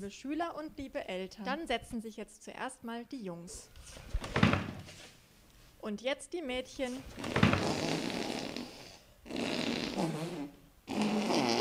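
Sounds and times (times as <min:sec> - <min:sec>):
speech: 0:00.0 - 0:04.6, 0:05.8 - 0:07.8
fart: 0:07.1 - 0:11.5.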